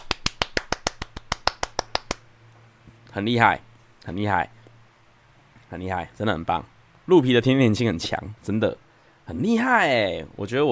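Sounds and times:
hand clapping: 0.0s - 2.2s
speech: 3.2s - 4.6s, 5.7s - 10.7s.

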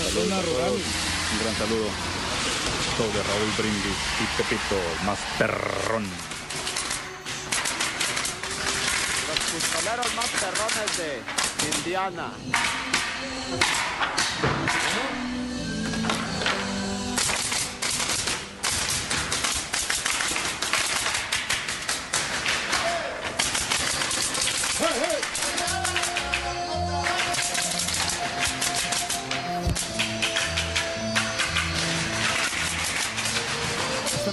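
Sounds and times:
speech: 0.1s - 2.4s, 3.0s - 6.3s, 9.5s - 15.4s
hammers pounding nails: 6.2s - 15.2s, 15.9s - 34.2s.

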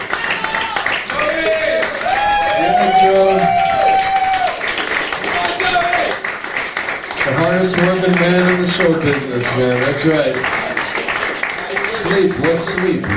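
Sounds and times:
crowd applauding: 0.0s - 13.1s
whoops and shouts: 0.1s - 4.6s
speech: 8.8s - 10.6s, 12.0s - 13.1s.

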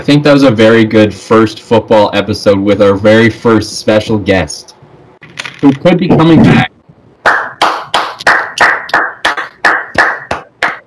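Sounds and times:
speech: 0.0s - 4.8s, 5.6s - 6.7s
hand clapping: 7.2s - 10.8s.

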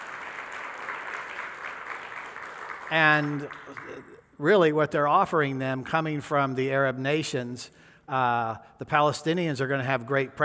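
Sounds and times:
audience hand clapping: 0.0s - 4.3s
speech: 2.9s - 10.4s.

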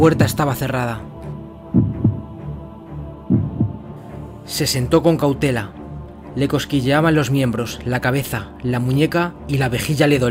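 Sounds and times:
speech: 0.0s - 1.1s, 4.5s - 5.8s, 6.4s - 10.2s
heartbeat: 1.7s - 2.6s, 3.2s - 3.9s.

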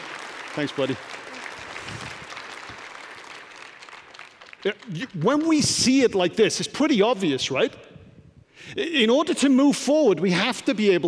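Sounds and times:
audience clapping: 0.0s - 6.1s
speech: 0.6s - 1.2s, 4.6s - 7.8s, 8.6s - 11.0s.

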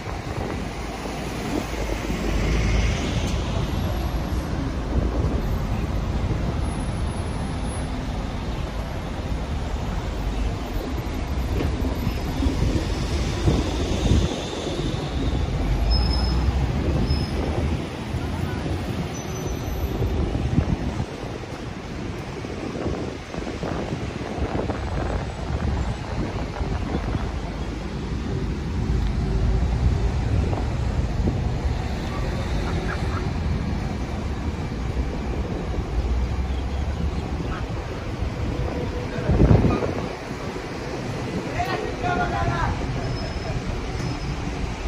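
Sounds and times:
passing vehicles: 0.0s - 44.8s
traffic rumble on Tel Aviv streets: 0.0s - 44.8s.

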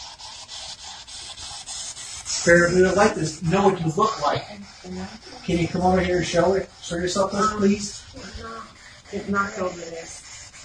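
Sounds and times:
ghost box radio sweep static: 2.4s - 10.1s
speech: 2.4s - 10.3s.

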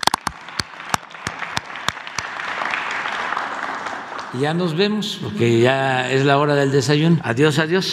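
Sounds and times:
audience applause: 0.0s - 4.9s
speech: 4.3s - 7.9s.

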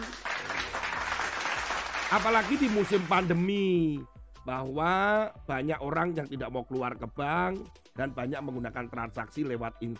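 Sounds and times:
audience applause: 0.0s - 3.3s
speech: 2.1s - 9.9s.

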